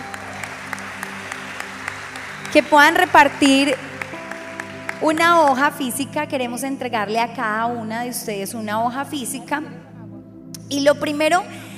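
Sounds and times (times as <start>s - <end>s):
audience applause: 0.0s - 5.7s
speech: 2.5s - 3.9s, 5.0s - 9.8s, 10.7s - 11.6s.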